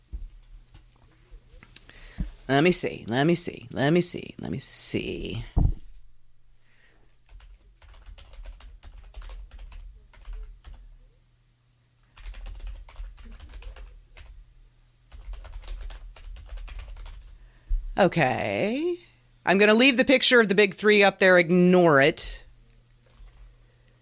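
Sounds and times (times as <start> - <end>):
speech: 2.5 - 5.6, 18.0 - 22.4
typing on a computer keyboard: 7.2 - 10.8, 12.2 - 14.4, 15.1 - 17.4.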